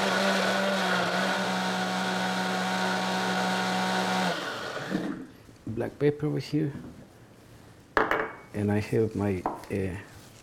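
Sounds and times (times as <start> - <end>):
kitchen blender running: 0.0 - 5.3
speech: 5.8 - 7.0, 8.6 - 10.4.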